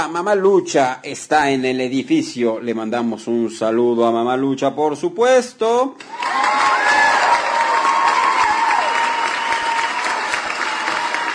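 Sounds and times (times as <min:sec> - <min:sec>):
speech: 0:00.0 - 0:07.0
audience applause: 0:06.0 - 0:11.3.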